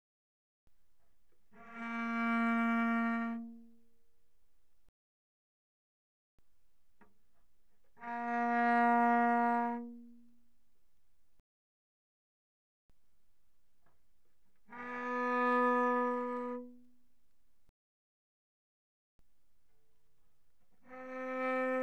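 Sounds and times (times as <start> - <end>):
cello arco pianissimo on the G string: 1.0 - 4.4, 7.0 - 11.0, 13.9 - 17.6, 20.2 - 21.8.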